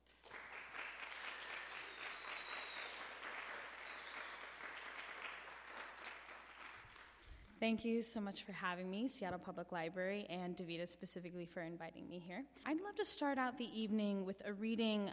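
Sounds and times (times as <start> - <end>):
audience applause: 0.0 - 7.2
speech: 7.6 - 15.1.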